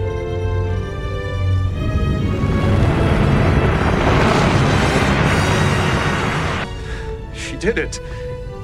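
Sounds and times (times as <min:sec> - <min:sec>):
steady tonal hum: 0:00.0 - 0:07.3
surface eruption explosion destroying a Borg ship: 0:01.7 - 0:06.8
speech: 0:07.6 - 0:08.2.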